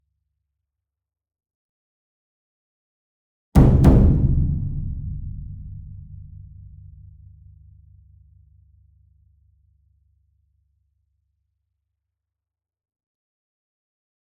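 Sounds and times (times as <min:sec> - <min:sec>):
concert bass drum in drum ensemble: 0:03.6 - 0:07.6.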